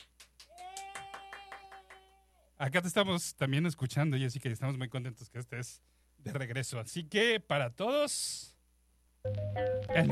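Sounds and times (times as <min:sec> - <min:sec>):
applause: 0:00.0 - 0:02.1
speech: 0:02.6 - 0:08.6, 0:09.2 - 0:10.1.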